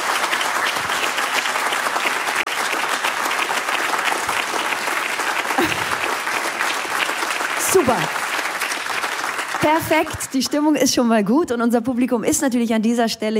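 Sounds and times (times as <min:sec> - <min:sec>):
live audience applause: 0:00.0 - 0:10.9
speech: 0:07.8 - 0:08.2, 0:09.6 - 0:13.3.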